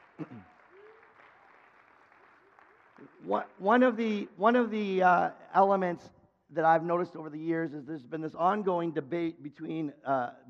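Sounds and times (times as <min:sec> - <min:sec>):
audience applause: 0:00.0 - 0:03.9
speech: 0:00.2 - 0:00.6, 0:03.0 - 0:10.4.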